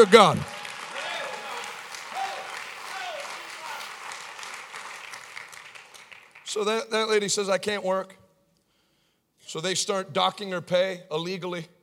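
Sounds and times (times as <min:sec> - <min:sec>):
speech: 0:00.0 - 0:00.5, 0:06.5 - 0:08.2, 0:09.5 - 0:11.8
scattered voices and cheers: 0:00.0 - 0:06.3
audience hand clapping: 0:00.0 - 0:06.9.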